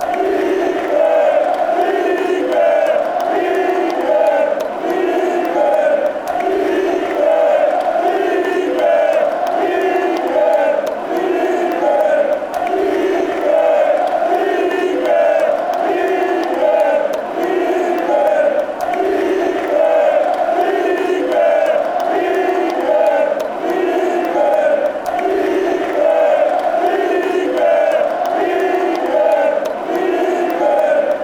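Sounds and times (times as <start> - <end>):
crowd chanting football songs and soccer chants: 0.0 - 31.2.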